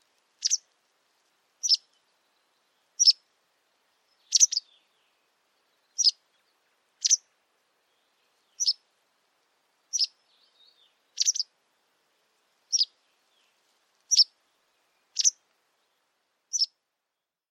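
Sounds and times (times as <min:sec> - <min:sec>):
White wagtail giving short sharp high chirps: 0:00.4 - 0:00.6, 0:01.6 - 0:01.8, 0:03.0 - 0:03.2, 0:04.2 - 0:04.8, 0:06.0 - 0:06.2, 0:07.0 - 0:07.2, 0:08.6 - 0:08.8, 0:09.9 - 0:11.5, 0:12.7 - 0:12.9, 0:14.1 - 0:14.3, 0:15.1 - 0:15.4, 0:16.5 - 0:16.7.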